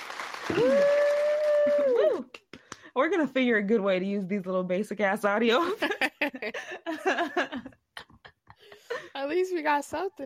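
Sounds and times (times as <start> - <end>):
people clapping: 0.0 - 2.9
speech: 3.0 - 7.7, 9.2 - 10.2
laughter: 5.6 - 9.2.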